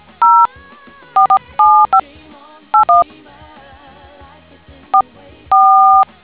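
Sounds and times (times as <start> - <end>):
DTMF tones: 0.2 - 0.5, 1.2 - 2.0, 2.8 - 3.0, 5.5 - 6.1.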